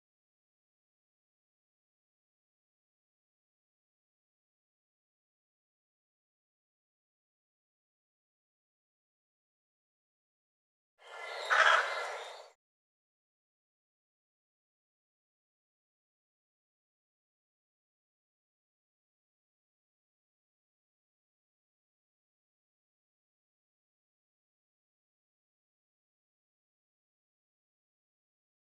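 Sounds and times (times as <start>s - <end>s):
bird harsh rasping calls: 11.0s - 12.6s.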